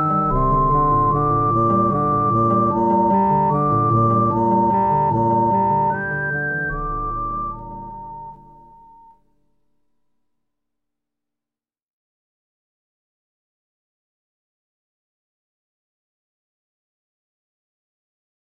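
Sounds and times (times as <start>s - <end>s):
oriental style music: 0.0s - 9.0s.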